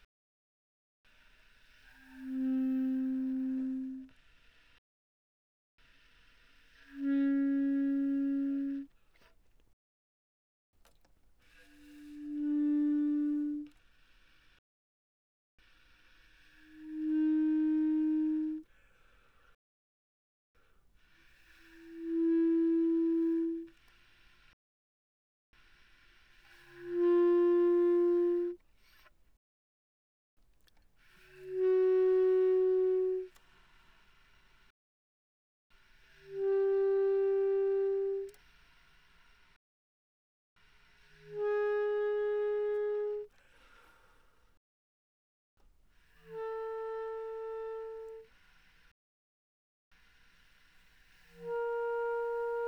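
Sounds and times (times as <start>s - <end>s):
bass clarinet pianissimo from C4 to B4: 1.5s - 4.5s, 6.7s - 9.4s, 11.4s - 14.4s, 16.0s - 18.8s, 21.1s - 24.1s, 26.0s - 28.6s, 31.0s - 34.4s, 35.8s - 39.0s, 40.6s - 43.4s, 45.9s - 48.8s, 50.0s - 52.6s.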